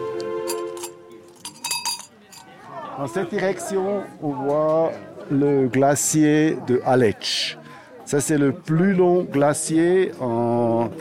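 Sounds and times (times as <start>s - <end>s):
small bells tinkling on love padlocks: 0.5s - 2.5s
speech: 3.0s - 10.9s.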